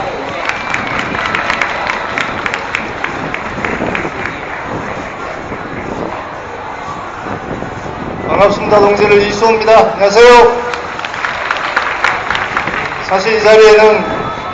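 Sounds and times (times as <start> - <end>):
loud audience applause: 0.0 - 5.0, 10.6 - 14.5
speech: 8.4 - 10.7, 13.1 - 14.2.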